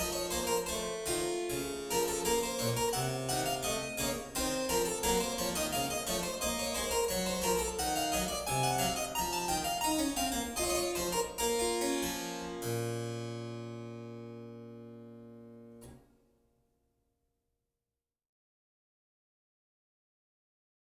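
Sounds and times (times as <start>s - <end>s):
keyboard gavotte in B minor: 0.0s - 15.9s.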